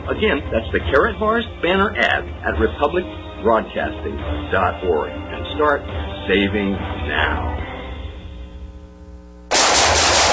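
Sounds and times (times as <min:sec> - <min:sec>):
steady low tonal hum: 0:00.0 - 0:09.5
speech: 0:00.1 - 0:07.6
rapid gunfire from a firearm: 0:09.5 - 0:10.3.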